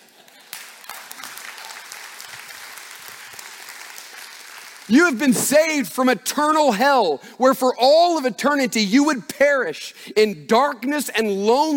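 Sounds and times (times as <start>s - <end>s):
crowd applauding: 0.0s - 5.4s
speech: 4.9s - 11.7s.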